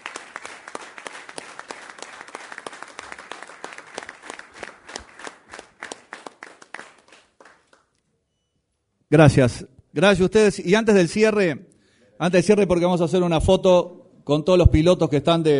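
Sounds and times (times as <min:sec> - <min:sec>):
audience applause: 0:00.0 - 0:07.8
speech: 0:09.1 - 0:15.5.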